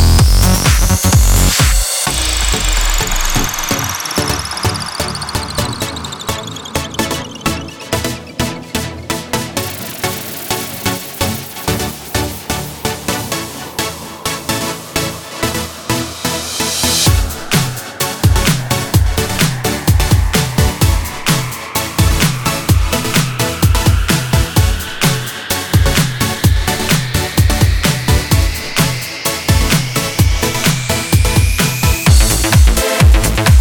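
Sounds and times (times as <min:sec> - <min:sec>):
progressive house and electro house music: 0:00.0 - 0:33.5.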